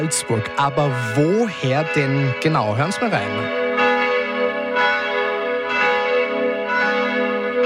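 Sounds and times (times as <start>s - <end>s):
speech: 0.0s - 3.6s
midday church bells ringing: 0.0s - 7.6s.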